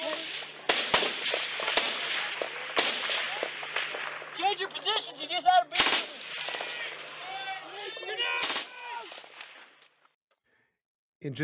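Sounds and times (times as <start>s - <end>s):
gunfire rounds in a July 2006 combat recording: 0.0s - 9.9s
speech: 11.2s - 11.4s.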